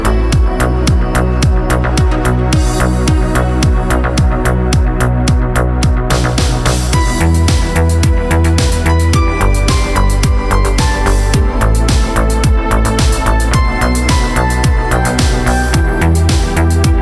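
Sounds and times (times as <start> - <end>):
modern beat on a Korg Pa900 keyboard: 0.0 - 17.0.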